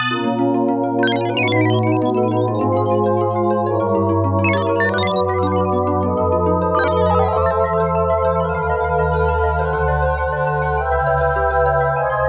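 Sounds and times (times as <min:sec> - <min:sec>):
interlude music: 0:00.1 - 0:12.1.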